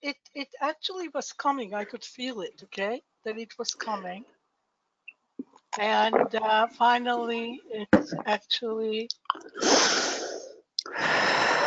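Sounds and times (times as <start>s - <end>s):
speech: 0.0s - 4.4s, 5.7s - 10.0s
forced breathing: 9.6s - 11.6s.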